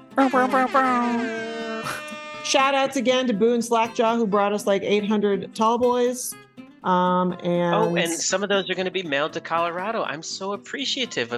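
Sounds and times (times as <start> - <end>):
air horn sound effect: 0.0 - 3.0
speech: 0.2 - 11.3.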